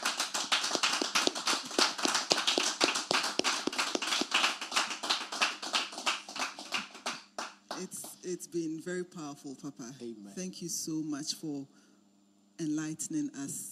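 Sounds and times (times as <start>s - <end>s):
audience clapping in thanks at a Christian worship gathering: 0.0s - 8.1s
speech: 7.8s - 11.8s, 12.6s - 13.7s.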